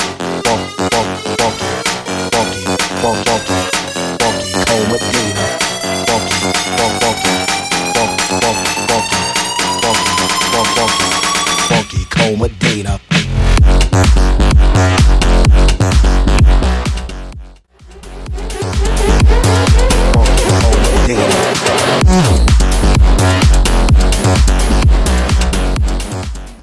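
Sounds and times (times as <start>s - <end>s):
funk bass house remix music: 0.0s - 26.6s.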